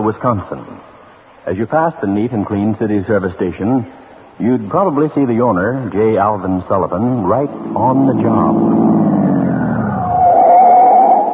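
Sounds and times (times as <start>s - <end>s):
speech: 0.1s - 9.1s
car engine rumble: 6.8s - 10.1s
car tires screeching on a sharp turn on Fountain Street in Dodgeville, Wisconsin: 7.2s - 11.2s.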